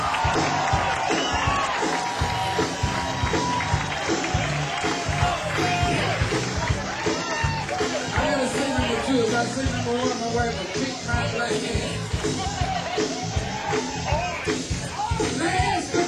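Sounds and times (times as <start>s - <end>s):
audience applause: 0.0s - 16.0s.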